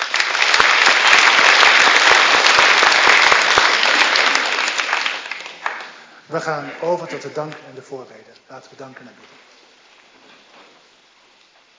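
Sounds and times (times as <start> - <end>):
church audience applauding: 0.0 - 7.7
speech: 6.3 - 9.5.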